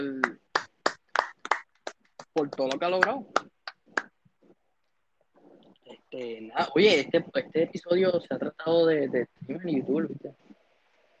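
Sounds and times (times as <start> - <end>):
hands clapping: 0.0 - 4.2
speech: 2.4 - 3.5, 6.2 - 10.4.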